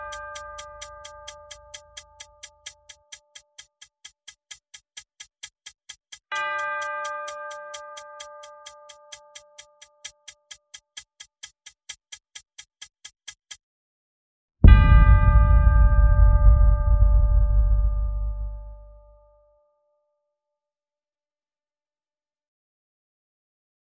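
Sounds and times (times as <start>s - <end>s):
percussion: 0.0s - 12.0s, 14.6s - 18.9s
sound effects: 14.6s - 19.0s.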